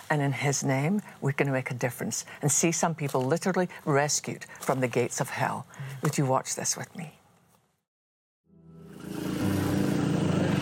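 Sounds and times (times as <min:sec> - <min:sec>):
speech: 0:00.1 - 0:07.2
tuk-tuk engine while riding through a red light district in Southeast Asia: 0:08.7 - 0:10.5.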